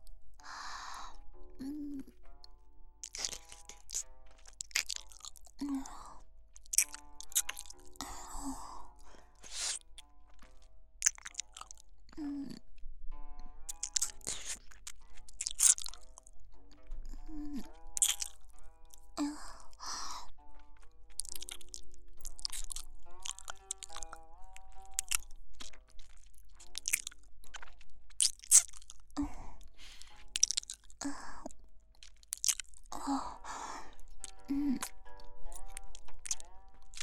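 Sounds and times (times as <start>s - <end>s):
faint tonal background: 0.0s - 37.0s
person crunching and chewing food: 1.6s - 12.7s, 13.6s - 37.0s.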